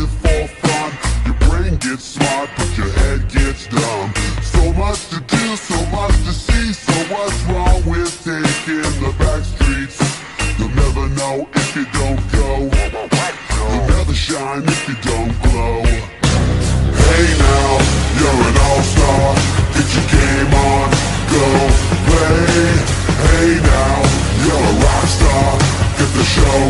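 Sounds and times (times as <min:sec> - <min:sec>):
chase music: 0:00.0 - 0:26.6.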